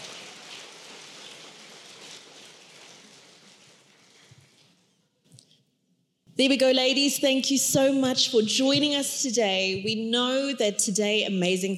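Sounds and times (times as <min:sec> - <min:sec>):
audience applause: 0:00.0 - 0:04.3
speech: 0:06.4 - 0:11.7.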